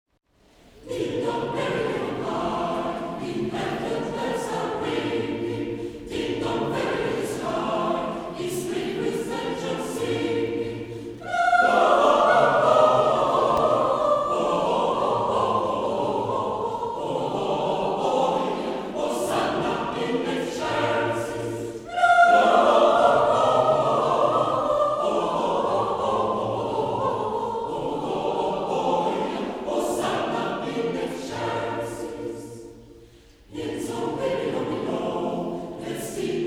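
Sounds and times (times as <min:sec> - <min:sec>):
Christmas carol: 0:00.3 - 0:36.4.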